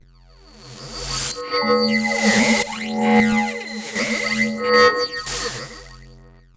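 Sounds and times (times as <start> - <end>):
techno atmosphere loop: 0.8 - 5.9.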